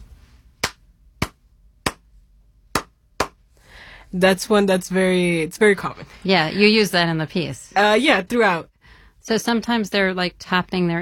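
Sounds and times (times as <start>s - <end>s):
hand claps in a Cuban clave rhythm: 0.6s - 2.1s, 2.8s - 3.4s
speech: 4.1s - 11.0s.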